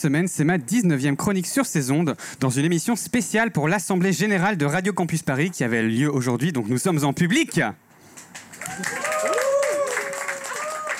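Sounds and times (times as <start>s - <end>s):
speech: 0.0s - 7.8s, 8.7s - 9.0s
audience applause: 8.2s - 10.9s.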